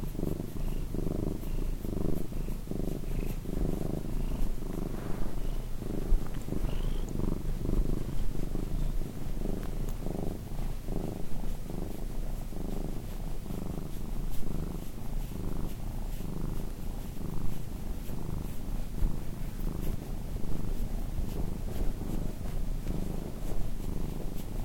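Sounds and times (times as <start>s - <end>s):
Domestic cat purring: 0.0s - 24.6s
faint clicks: 9.6s - 10.0s.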